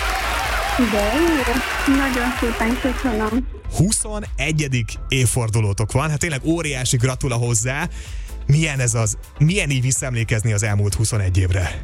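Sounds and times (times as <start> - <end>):
applause: 0.0 - 3.4
speech: 0.8 - 11.8.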